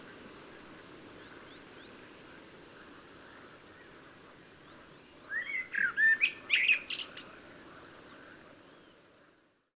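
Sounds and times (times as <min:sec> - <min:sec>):
common blackbird singing: 0:04.6 - 0:07.3.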